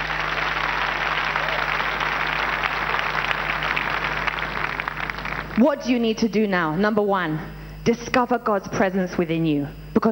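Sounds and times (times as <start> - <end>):
audience clapping: 0.0 - 5.6
speech: 5.6 - 10.1.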